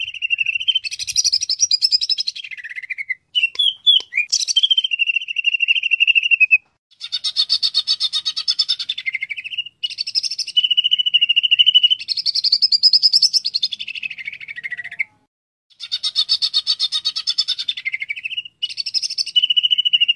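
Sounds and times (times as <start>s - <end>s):
greater green leafbird chattering song: 0.0s - 20.1s.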